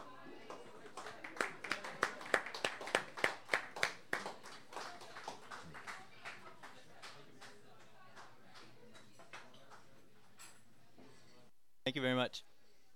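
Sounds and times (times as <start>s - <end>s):
audience applause: 0.0s - 7.5s
murmur of voices: 0.0s - 11.1s.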